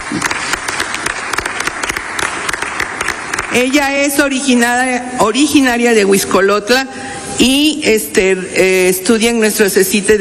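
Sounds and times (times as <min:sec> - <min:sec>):
audience applause: 0:00.0 - 0:03.6
speech: 0:03.5 - 0:10.1.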